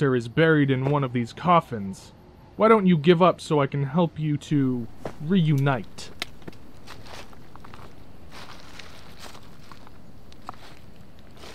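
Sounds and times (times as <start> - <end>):
speech: 0.0 - 6.6
footsteps: 4.8 - 11.5.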